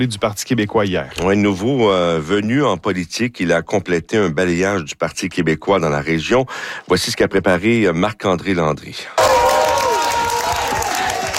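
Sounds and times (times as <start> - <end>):
speech: 0.0 - 9.3
Parti québécois supporters cheering after election win in Abitibi-Est: 9.2 - 11.3
supporters clapping: 9.2 - 11.3.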